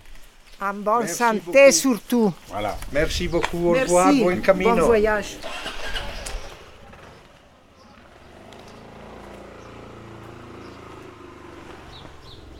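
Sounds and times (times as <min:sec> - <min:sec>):
speech: 0:00.6 - 0:05.8
motorcycle engine starting and idling: 0:05.1 - 0:12.5.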